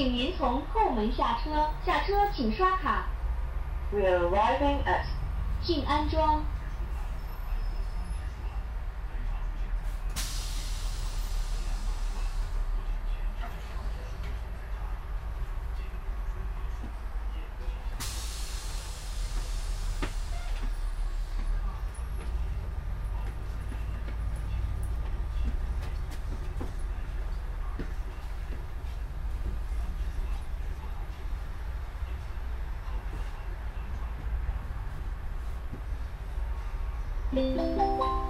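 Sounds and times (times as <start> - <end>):
speech: 0.0 - 3.2, 3.9 - 6.6
city bus engine rumbling as the bus pulls away from a stop: 0.0 - 38.2.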